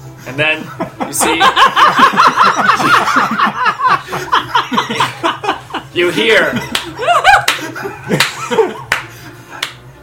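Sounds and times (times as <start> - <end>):
speech: 0.2 - 5.0, 6.0 - 6.8
laughter: 0.6 - 9.4
slow sarcastic hand clapping: 6.7 - 9.8.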